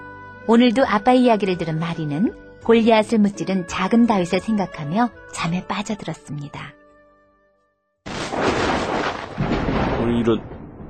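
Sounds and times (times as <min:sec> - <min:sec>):
speech: 0:00.5 - 0:06.8, 0:10.1 - 0:10.6
sudden thunderclap: 0:08.1 - 0:10.8.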